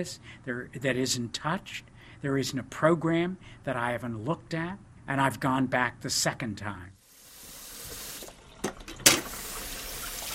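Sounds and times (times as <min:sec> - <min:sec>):
speech: 0:00.0 - 0:07.0
water running into a sink: 0:07.1 - 0:10.3.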